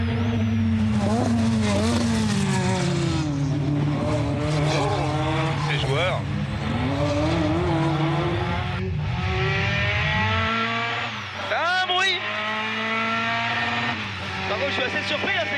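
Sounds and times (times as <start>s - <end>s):
rally car engine accelerating: 0.0s - 15.5s.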